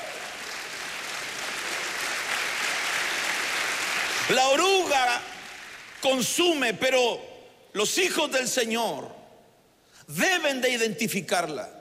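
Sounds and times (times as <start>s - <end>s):
church congregation clapping hands in worship: 0.0s - 7.0s
speech: 4.3s - 5.3s, 6.0s - 9.2s, 10.1s - 11.7s.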